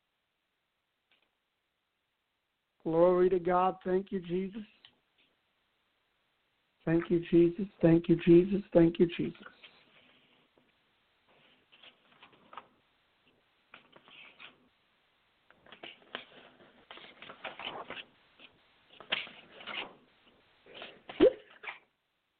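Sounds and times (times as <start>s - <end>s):
speech: 2.8s - 4.8s, 6.8s - 9.6s
Bible pages turning: 9.4s - 14.7s, 15.5s - 21.8s.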